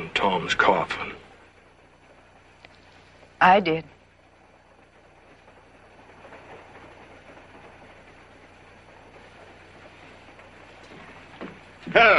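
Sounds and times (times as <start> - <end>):
steam train rumbling on rails: 0.0 - 12.1
speech: 0.2 - 1.2, 3.4 - 4.0, 11.9 - 12.1.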